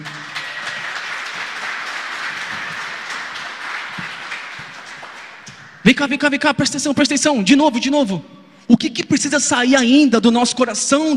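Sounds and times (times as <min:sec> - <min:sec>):
audience clapping: 0:00.0 - 0:05.8
speech: 0:05.8 - 0:11.1.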